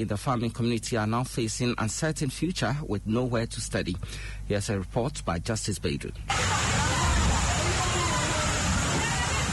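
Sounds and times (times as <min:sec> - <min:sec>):
speech: 0:00.0 - 0:06.7
rain pouring into classroom: 0:06.3 - 0:09.5
school children fleeing rain: 0:06.3 - 0:09.5.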